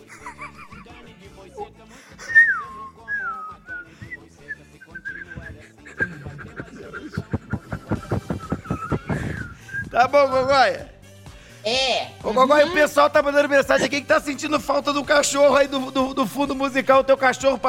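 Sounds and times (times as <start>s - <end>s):
laughter: 0.0s - 2.5s, 5.1s - 10.6s
fluty mouth whistling: 2.2s - 10.4s
breathy rhythmic puffs: 3.4s - 11.7s
speech: 10.0s - 10.9s, 11.7s - 17.6s.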